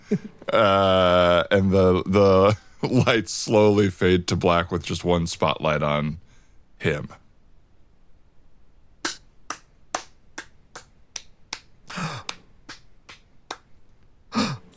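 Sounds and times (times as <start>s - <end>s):
speech: 0.1s - 6.2s, 6.8s - 7.2s
hand clapping: 9.1s - 13.7s.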